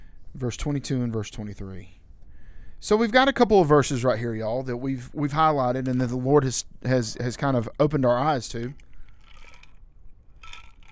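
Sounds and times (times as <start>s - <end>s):
speech: 0.4s - 2.0s, 2.8s - 8.9s
sipping coffee: 1.9s - 10.8s.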